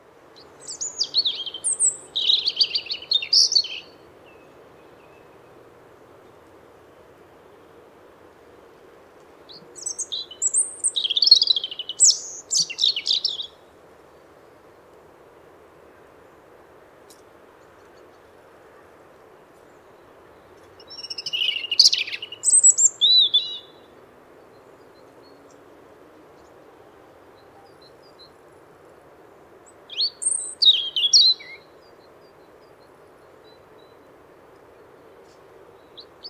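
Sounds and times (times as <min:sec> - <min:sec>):
European robin singing: 0:00.4 - 0:05.5, 0:09.5 - 0:13.6, 0:19.7 - 0:25.6, 0:29.6 - 0:34.1.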